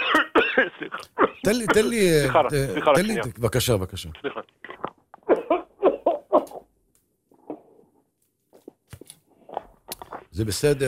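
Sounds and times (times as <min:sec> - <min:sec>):
harsh coughing: 0:00.0 - 0:02.1, 0:05.2 - 0:06.7
speech: 0:00.6 - 0:04.6, 0:10.4 - 0:10.8
throat clearing: 0:05.2 - 0:06.7.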